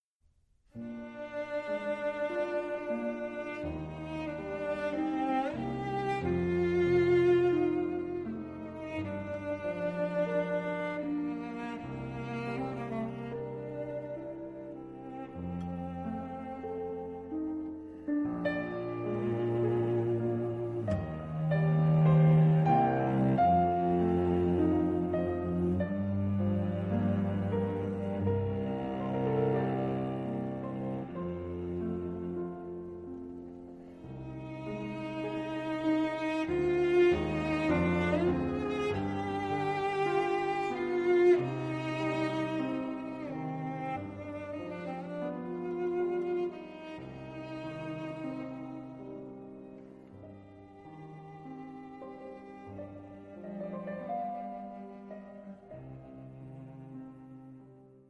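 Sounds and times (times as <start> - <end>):
slow cello sonata movement in G minor: 0.7 - 58.0.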